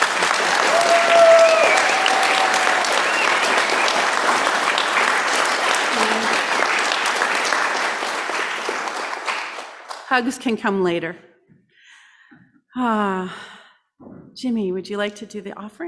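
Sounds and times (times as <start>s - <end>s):
audience applause: 0.0s - 10.2s
speech: 10.1s - 11.3s, 12.8s - 13.5s, 14.4s - 15.8s.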